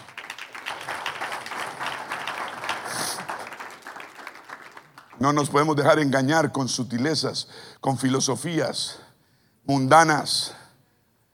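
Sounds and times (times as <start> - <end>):
audience applause: 0.0 - 5.5
speech: 5.2 - 9.0, 9.7 - 10.6.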